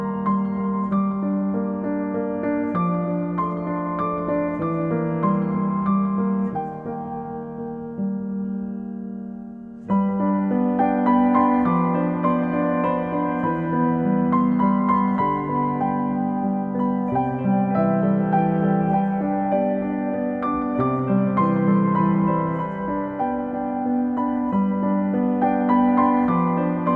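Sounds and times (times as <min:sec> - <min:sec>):
piano: 0:00.0 - 0:26.9.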